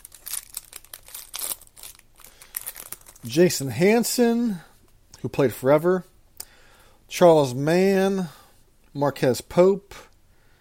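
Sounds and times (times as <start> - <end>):
plastic wrapper of a pack of football trading cards being torn open: 0.0 - 3.4
speech: 3.2 - 6.1, 7.1 - 8.4, 9.0 - 9.9.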